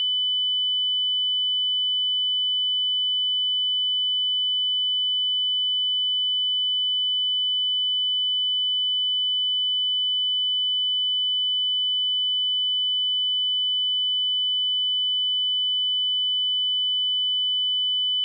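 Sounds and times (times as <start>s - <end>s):
2 kHz sine tone: 0.0s - 18.2s.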